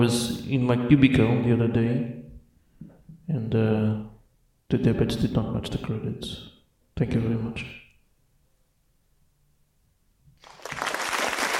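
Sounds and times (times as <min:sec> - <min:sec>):
speech: 0:00.0 - 0:02.2, 0:03.3 - 0:04.1, 0:04.7 - 0:07.8
audience applause: 0:10.4 - 0:11.5.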